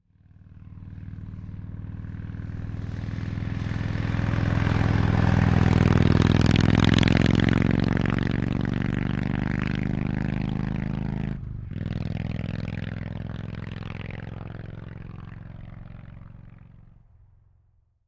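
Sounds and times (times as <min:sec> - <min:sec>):
motorcycle passing by: 0:00.1 - 0:17.1.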